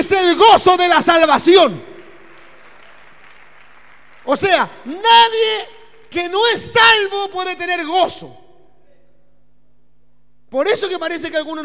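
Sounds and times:
speech: 0.0s - 1.9s, 4.3s - 8.4s, 10.5s - 11.6s
audience applauding: 2.0s - 4.7s.

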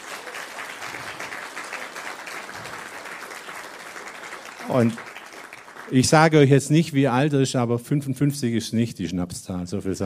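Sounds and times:
audience applause: 0.0s - 6.8s
speech: 4.7s - 5.1s, 5.9s - 10.0s.

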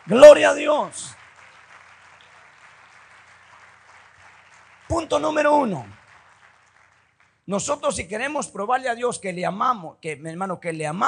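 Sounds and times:
audience applause: 0.0s - 7.5s
speech: 0.1s - 1.2s, 4.9s - 6.0s, 7.5s - 11.0s.

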